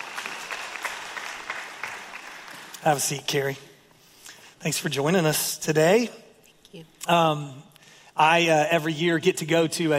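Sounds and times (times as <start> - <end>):
audience applause: 0.0 - 3.1
speech: 2.8 - 3.7, 4.6 - 9.9.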